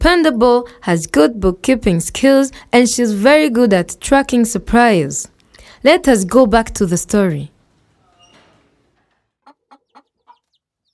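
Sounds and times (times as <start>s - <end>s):
speech: 0.0s - 7.5s
chickens clucking at a farm workplace: 8.9s - 10.9s.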